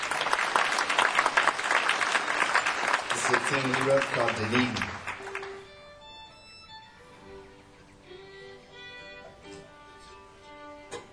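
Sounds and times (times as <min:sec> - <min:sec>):
audience applause welcoming a mandolin player: 0:00.0 - 0:05.7
speech: 0:03.3 - 0:05.0.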